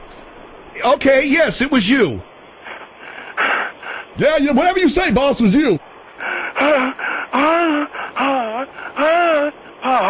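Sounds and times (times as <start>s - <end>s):
speech: 0.8s - 2.3s, 4.2s - 5.9s
caller heavily breathing and gasping on the phone: 2.6s - 4.2s, 6.1s - 10.0s.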